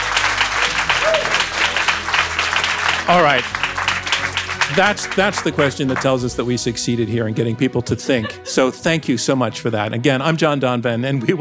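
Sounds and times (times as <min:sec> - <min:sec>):
audience applause: 0:00.0 - 0:07.0
speech: 0:03.1 - 0:03.6, 0:04.7 - 0:11.3
laughter: 0:04.6 - 0:06.9, 0:07.6 - 0:09.4.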